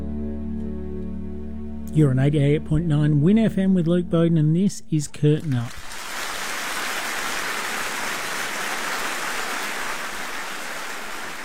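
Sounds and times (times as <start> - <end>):
speech: 2.0 - 5.8
audience applause: 5.2 - 11.4.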